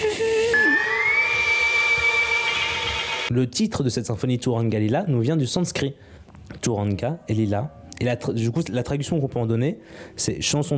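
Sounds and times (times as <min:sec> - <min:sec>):
ondes Martenot electronic whistling tone: 0:00.0 - 0:03.3
speech: 0:03.3 - 0:10.7.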